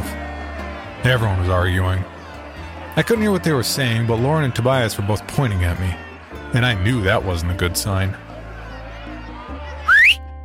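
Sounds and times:
speech: 1.0s - 2.2s, 3.0s - 8.2s
loud shrill whistle: 9.8s - 10.2s.

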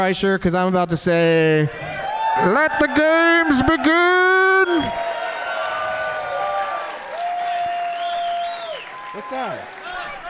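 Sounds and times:
speech: 0.0s - 5.1s, 9.2s - 9.8s
audience yelling and cheering: 1.7s - 10.2s.

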